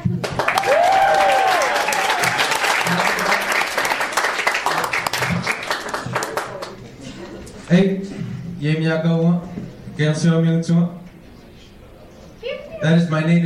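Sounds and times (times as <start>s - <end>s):
audience applause: 0.0s - 7.0s
high whistle or cheer: 0.5s - 2.5s
speech: 7.7s - 8.0s, 8.6s - 11.0s, 12.8s - 13.4s.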